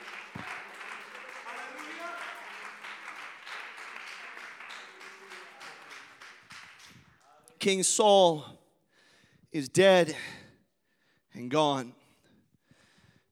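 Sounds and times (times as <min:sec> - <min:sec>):
crowd applauding: 0:00.0 - 0:07.3
speech: 0:07.6 - 0:08.6, 0:09.5 - 0:10.4, 0:11.4 - 0:12.0.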